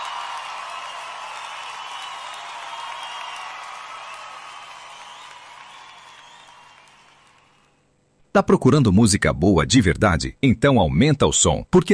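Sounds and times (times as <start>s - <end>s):
large crowd clapping and cheering: 0.0s - 7.8s
speech: 8.4s - 11.9s.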